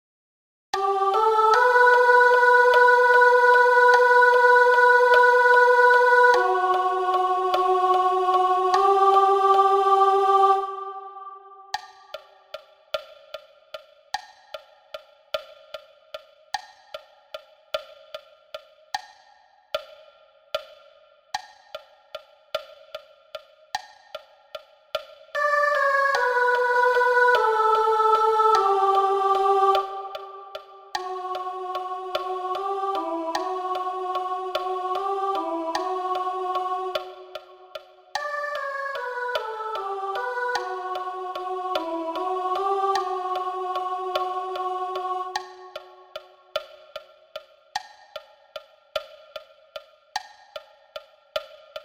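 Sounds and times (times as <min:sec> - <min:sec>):
soprano singing: 0:00.8 - 0:11.7, 0:25.4 - 0:46.2.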